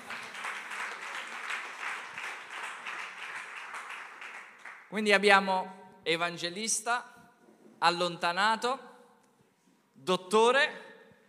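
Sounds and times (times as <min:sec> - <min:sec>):
audience applause: 0:00.0 - 0:04.9
speech: 0:04.9 - 0:07.1, 0:07.8 - 0:08.9, 0:10.0 - 0:10.8.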